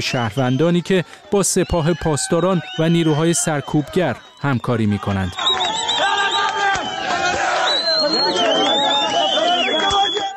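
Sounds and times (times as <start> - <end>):
speech: 0.0 - 5.9
protest crowd chanting slogans in Marivan: 5.4 - 10.3.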